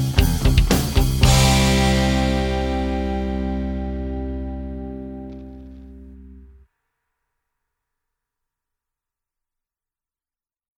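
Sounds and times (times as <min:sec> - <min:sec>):
backing track in C modes: 0:00.0 - 0:06.6.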